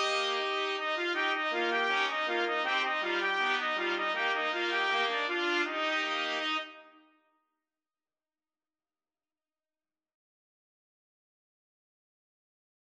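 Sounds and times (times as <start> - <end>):
4 trumpets playing: 0.0 - 7.0.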